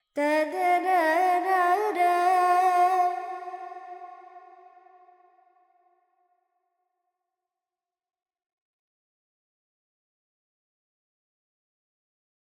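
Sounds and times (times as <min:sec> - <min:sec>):
Carnatic female vocal alaps in Dorian mode: 0:00.1 - 0:04.9.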